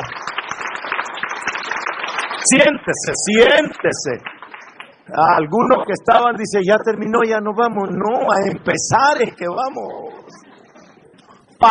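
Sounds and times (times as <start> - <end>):
audience applauding: 0.0 - 5.7
speech: 2.4 - 4.4, 5.1 - 10.4, 11.6 - 11.7.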